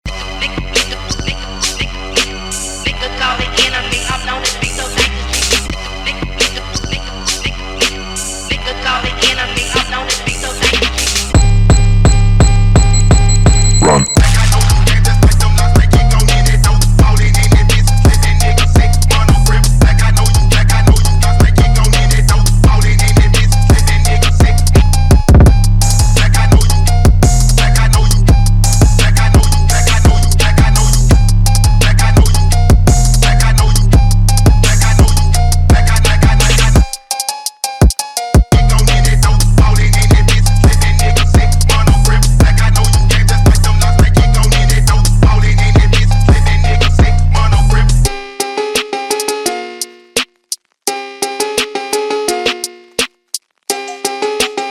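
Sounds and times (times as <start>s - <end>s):
phonk music: 0.1s - 54.6s.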